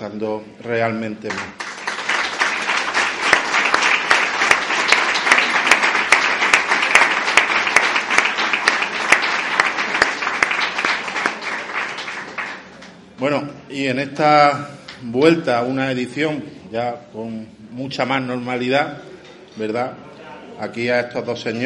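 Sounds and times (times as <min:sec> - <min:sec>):
speech: 0:00.0 - 0:01.7, 0:13.2 - 0:20.0, 0:20.6 - 0:21.6
audience applause: 0:01.3 - 0:13.1.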